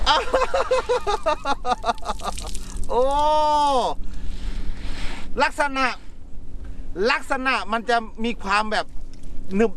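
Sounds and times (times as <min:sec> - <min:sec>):
laughter: 0:00.1 - 0:02.5
speech: 0:00.1 - 0:04.0, 0:05.4 - 0:06.1, 0:06.9 - 0:09.0, 0:09.5 - 0:09.7
water spraying out of a sprayer: 0:01.1 - 0:02.9.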